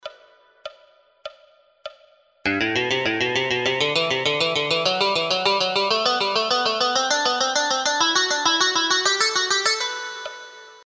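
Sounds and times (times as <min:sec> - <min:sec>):
musical scales: 0:02.5 - 0:10.8.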